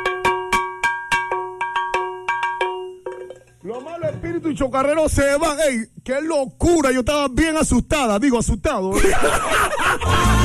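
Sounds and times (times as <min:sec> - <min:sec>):
bell ringing in sharp metallic strikes: 0:00.0 - 0:03.7
speech: 0:03.7 - 0:10.4
laughter: 0:08.9 - 0:10.4.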